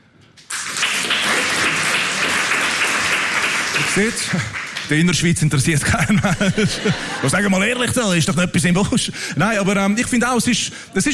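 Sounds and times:
audience clapping: 0.4s - 6.7s
speech: 4.0s - 11.1s
laughter: 5.7s - 7.9s.

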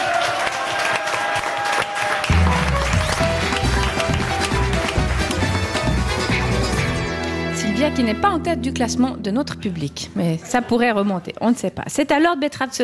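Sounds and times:
audience applause: 0.0s - 7.1s
speech: 7.9s - 12.8s.

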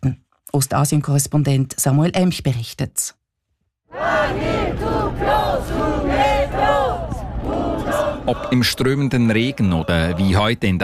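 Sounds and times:
speech: 0.0s - 3.2s, 3.9s - 7.0s, 8.2s - 10.8s
crowd of protesters chanting slogans in unison: 3.9s - 10.4s.

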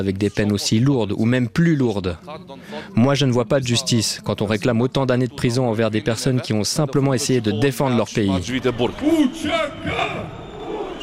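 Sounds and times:
speech: 0.0s - 10.4s
crowd chanting a slogan amid Kosovar and Albanian flags: 8.8s - 11.0s.

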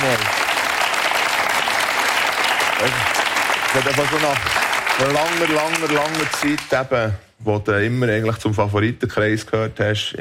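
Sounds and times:
audience applause: 0.0s - 6.8s
speech: 2.8s - 3.0s, 3.7s - 10.1s.

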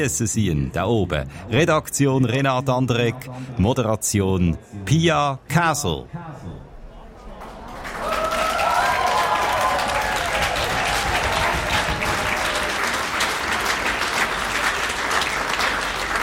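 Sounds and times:
speech: 0.0s - 6.7s
applause: 7.4s - 16.2s.

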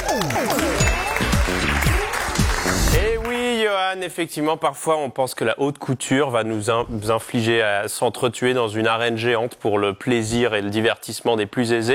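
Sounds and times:
audience applause: 0.0s - 3.5s
speech: 3.8s - 11.9s.

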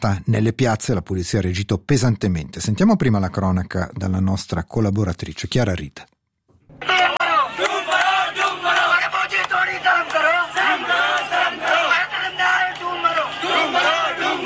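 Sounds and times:
speech: 0.0s - 6.1s
large protest crowd shouting and chanting: 6.7s - 14.4s.

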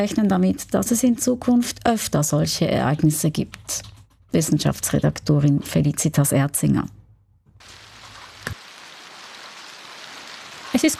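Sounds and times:
speech: 0.0s - 7.0s, 10.8s - 10.9s
hailstorm over Bülach: 7.6s - 10.9s.

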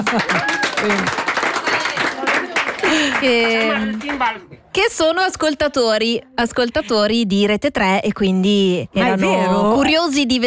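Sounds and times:
speech: 0.0s - 1.3s, 3.2s - 10.4s
class applauding: 0.0s - 4.4s.

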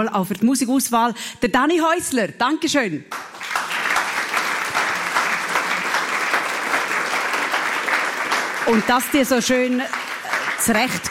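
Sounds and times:
speech: 0.0s - 3.5s, 8.7s - 10.0s, 10.6s - 11.0s
audience applauding: 3.1s - 11.0s.

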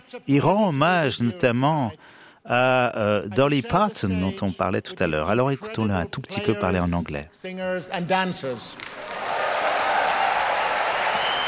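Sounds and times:
speech: 0.1s - 9.2s
audience applauding at a concert: 8.5s - 11.4s.

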